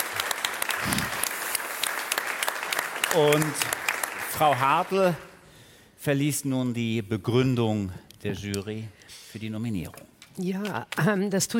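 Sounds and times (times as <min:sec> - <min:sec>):
audience applause: 0:00.0 - 0:05.2
speech: 0:03.1 - 0:03.8, 0:04.4 - 0:05.3, 0:06.0 - 0:11.5.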